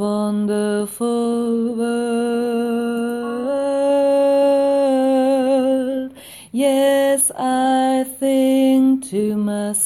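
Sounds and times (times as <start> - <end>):
tenor singing: 0.1 - 9.5
gospel choir singing: 2.3 - 5.8.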